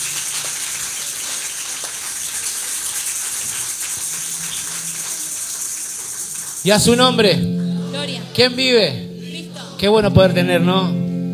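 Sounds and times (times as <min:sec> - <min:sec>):
audience applause: 0:00.0 - 0:07.2
speech: 0:06.6 - 0:09.0, 0:09.8 - 0:11.0.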